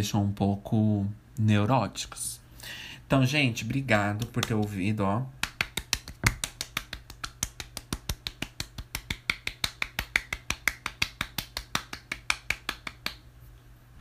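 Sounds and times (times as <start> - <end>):
speech: 0.0 - 5.4
hand clapping: 3.6 - 4.8, 5.4 - 13.2.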